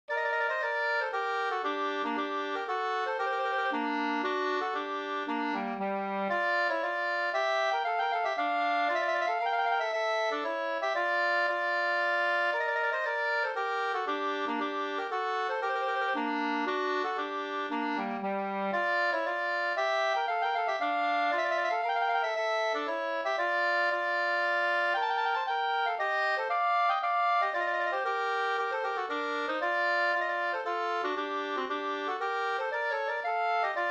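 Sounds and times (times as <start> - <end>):
Swedish polska folk dance tune: 0.1 - 33.8.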